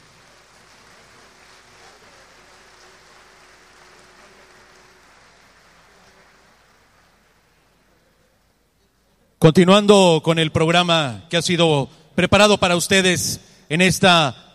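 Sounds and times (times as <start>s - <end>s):
audience applause: 0.0s - 8.0s
speech: 9.4s - 14.5s.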